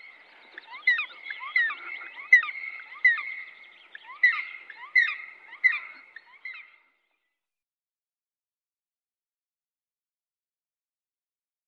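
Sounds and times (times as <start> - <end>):
black woodpecker whistled calls: 0.0 - 6.8.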